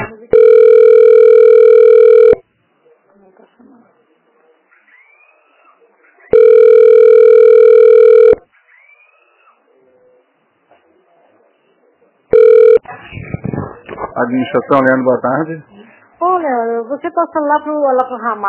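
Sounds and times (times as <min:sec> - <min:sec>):
telephone ringback tone while a call is transferred: 0:00.3 - 0:02.4, 0:06.3 - 0:08.4, 0:12.3 - 0:12.8
speech: 0:14.5 - 0:15.7, 0:16.4 - 0:18.4.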